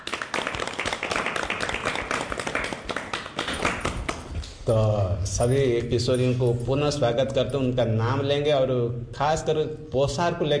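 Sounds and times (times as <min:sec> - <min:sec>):
group clapping hands: 0:00.0 - 0:04.6
speech: 0:04.7 - 0:10.5.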